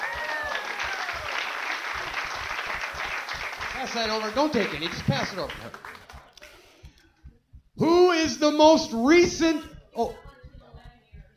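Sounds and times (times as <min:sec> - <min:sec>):
audience clapping for a woman: 0:00.0 - 0:06.8
speech: 0:03.8 - 0:05.9, 0:08.2 - 0:10.2.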